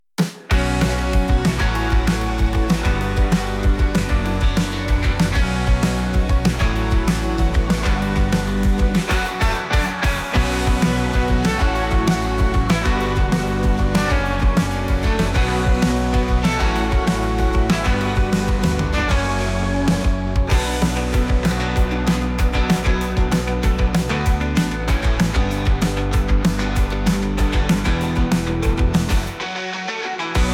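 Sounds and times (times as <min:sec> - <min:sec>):
instrumental music: 0:00.3 - 0:30.5.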